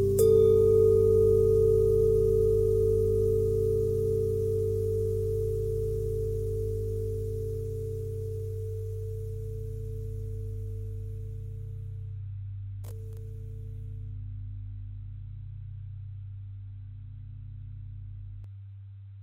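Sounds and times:
bent and twisted bell tone: 0.0 - 11.9.

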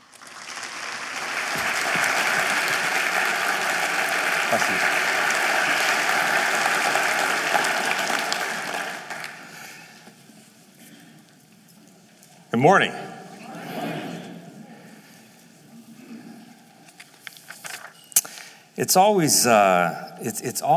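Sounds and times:
audience applause welcoming a guest speaker: 0.0 - 9.9
speech: 4.5 - 5.0, 12.6 - 13.0, 18.8 - 20.7.

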